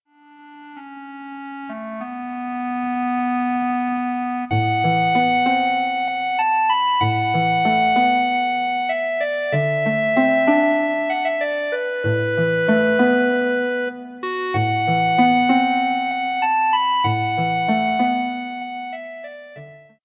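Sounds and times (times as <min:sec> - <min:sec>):
clarinet: 0:00.1 - 0:20.0.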